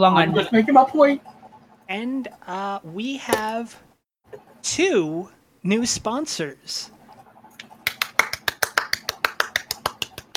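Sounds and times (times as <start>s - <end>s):
speech: 0.0s - 7.0s
hand-made applause track: 7.6s - 10.3s.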